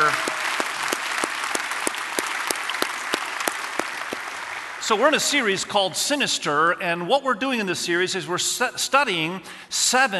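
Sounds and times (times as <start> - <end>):
audience applause: 0.0 - 5.5
speech: 4.9 - 10.1.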